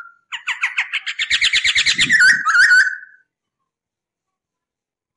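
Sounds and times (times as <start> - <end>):
masked laughingthrush song: 0.4 - 3.2.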